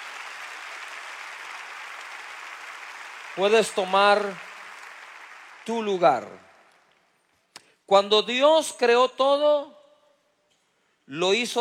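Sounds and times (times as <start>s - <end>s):
crowd applause: 0.0s - 6.2s
speech: 3.4s - 4.4s, 5.6s - 6.5s, 7.9s - 9.8s, 11.1s - 11.5s.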